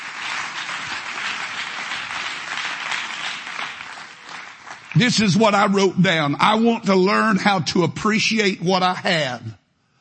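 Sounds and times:
audience clapping hands in praise: 0:00.0 - 0:06.2
speech: 0:04.9 - 0:09.6.

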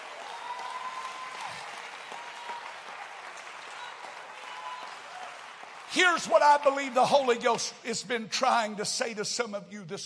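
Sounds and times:
audience clapping hands: 0:00.0 - 0:07.9
speech: 0:06.0 - 0:10.0.

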